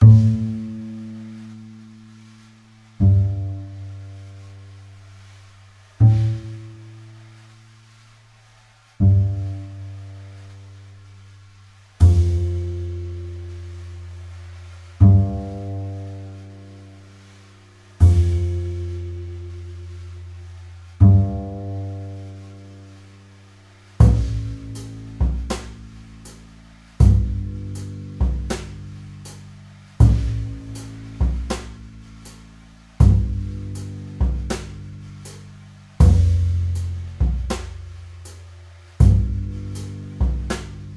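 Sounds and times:
bass at 80 bpm: 0.0s - 40.9s
drums at 80 bpm: 0.0s - 40.9s.

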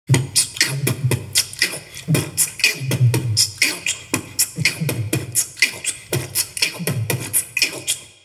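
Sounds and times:
beatboxing: 0.1s - 8.2s.

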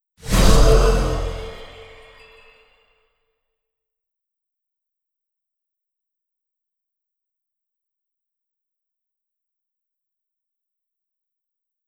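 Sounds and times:
berserk skill spell sound effect: 0.2s - 2.3s.

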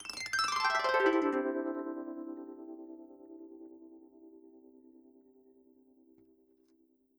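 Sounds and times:
kantele: 0.0s - 1.4s.

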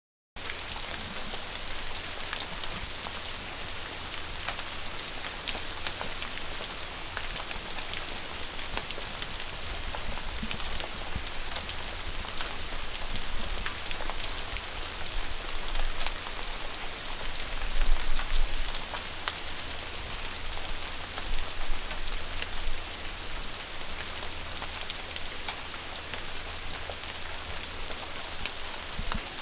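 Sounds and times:
heavy rain on porch: 0.4s - 29.4s.

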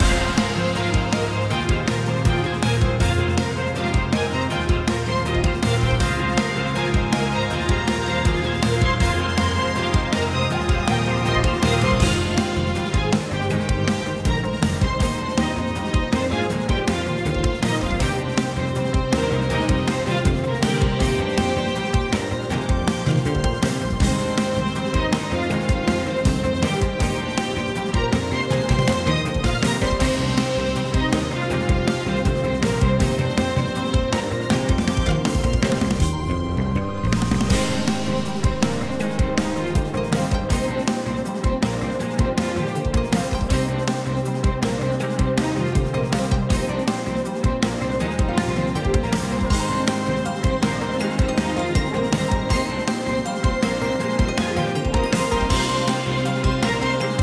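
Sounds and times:
boss battle music: 0.0s - 57.2s.

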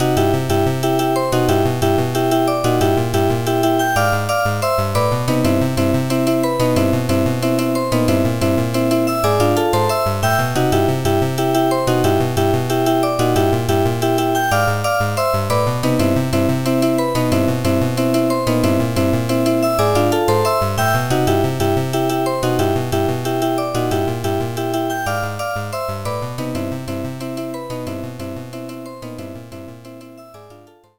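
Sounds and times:
background music: 0.0s - 30.9s.

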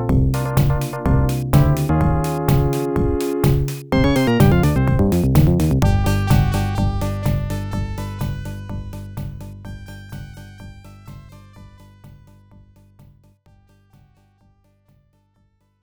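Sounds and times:
game menu music: 0.0s - 8.4s.

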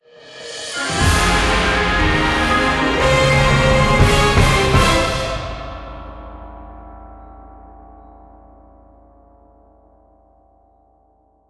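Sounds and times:
victory jingle: 0.8s - 6.0s.

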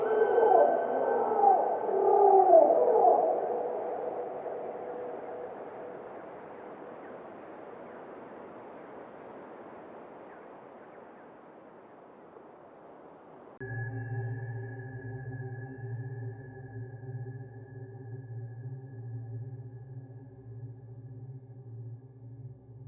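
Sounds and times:
jungle animals calling: 0.0s - 8.1s.

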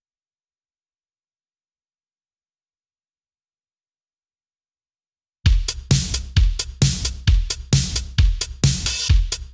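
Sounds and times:
drums stem intro: 5.5s - 9.5s.

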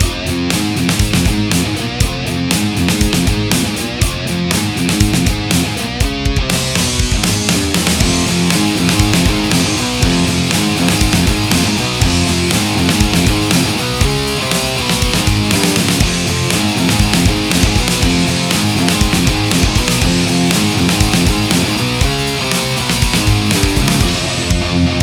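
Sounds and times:
looped heavy riff: 0.0s - 25.0s.

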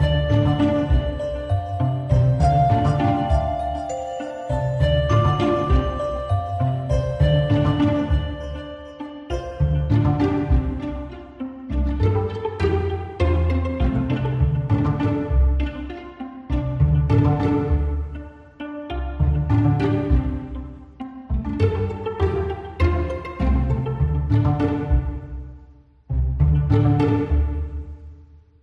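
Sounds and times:
harp: 0.0s - 25.2s
pizzicato strings: 0.0s - 28.4s.

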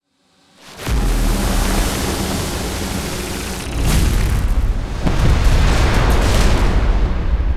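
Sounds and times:
boss destruction sound effect: 0.6s - 7.4s.

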